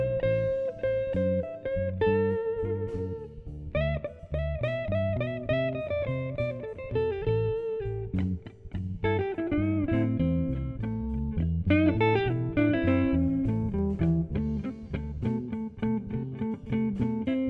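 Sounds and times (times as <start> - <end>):
Chicago Westside slow blues play-along track: 0.0 - 17.4.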